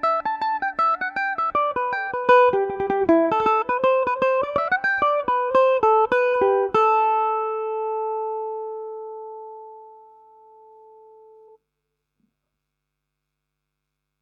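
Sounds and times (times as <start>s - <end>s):
Irish mandolin in A Dorian: 0.0s - 11.0s.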